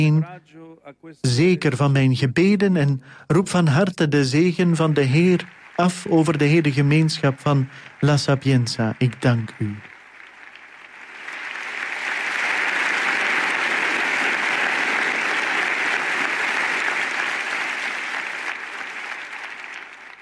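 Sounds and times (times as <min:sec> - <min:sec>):
speech: 0:00.0 - 0:09.9
applause from professors and students: 0:04.3 - 0:20.1.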